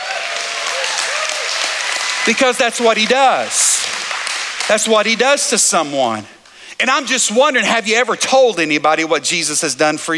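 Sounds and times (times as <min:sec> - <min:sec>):
crowd shouting and whooping: 0:00.0 - 0:04.7
audience applause: 0:00.0 - 0:05.7
speech: 0:02.3 - 0:03.7, 0:04.7 - 0:10.1.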